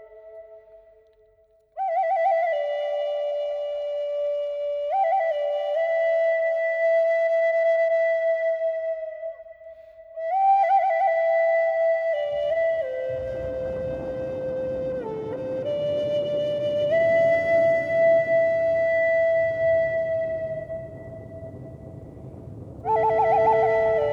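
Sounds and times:
Native American flutes: 0:00.0 - 0:24.1
thunder on a warm summer evening: 0:12.8 - 0:24.1.

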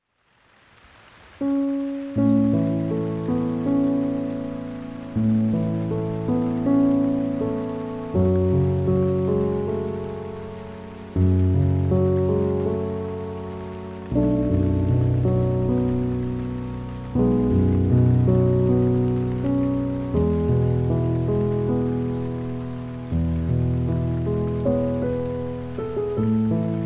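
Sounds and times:
rain: 0:00.0 - 0:26.8
piano: 0:00.1 - 0:26.8.

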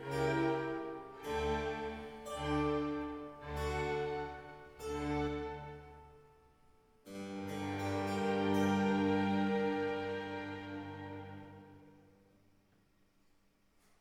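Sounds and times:
two violins, cello and string ensemble playing a concerto: 0:00.0 - 0:06.1, 0:07.1 - 0:12.1.

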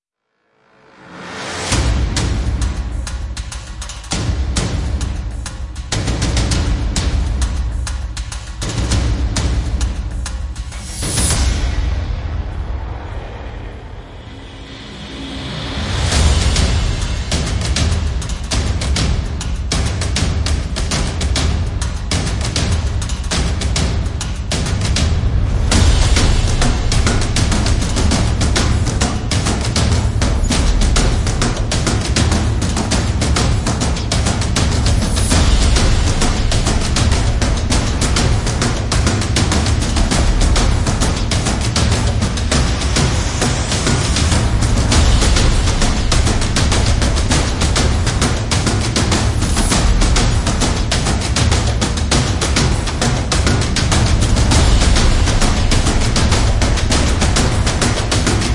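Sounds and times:
percussion: 0:00.9 - 0:58.5.

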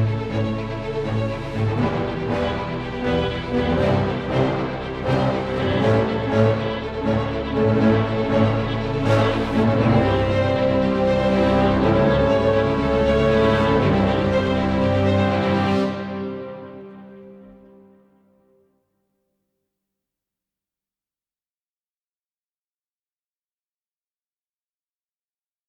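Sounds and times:
action ambient music: 0:00.0 - 0:18.2.

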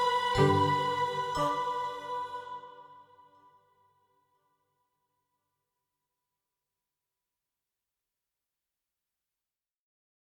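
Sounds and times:
lazy ambient music: 0:00.0 - 0:03.0.

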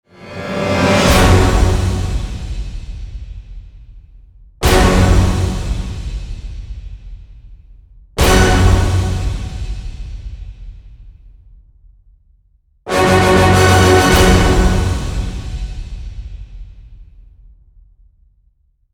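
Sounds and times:
orchestral end hits in F sharp: 0:00.1 - 0:03.2, 0:04.6 - 0:06.6, 0:08.2 - 0:10.2, 0:12.9 - 0:16.7.

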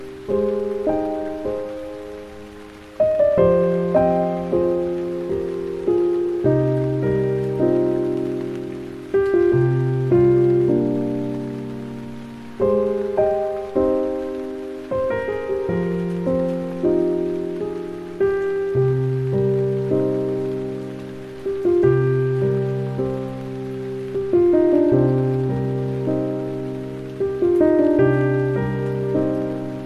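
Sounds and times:
piano: 0:00.0 - 0:29.8
rain: 0:00.0 - 0:29.8.

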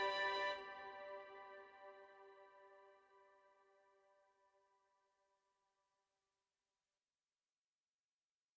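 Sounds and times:
sparkling ambient music: 0:00.0 - 0:03.2.

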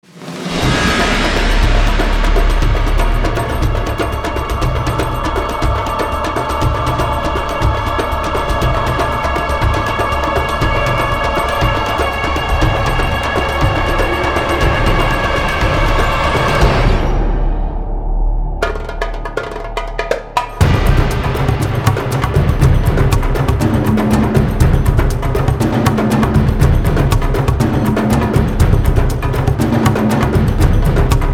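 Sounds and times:
drums: 0:00.0 - 0:31.3.

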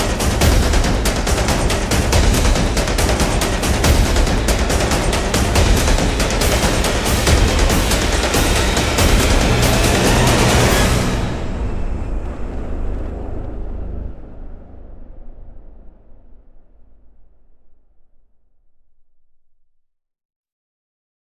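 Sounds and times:
percussion: 0:00.0 - 0:16.4.

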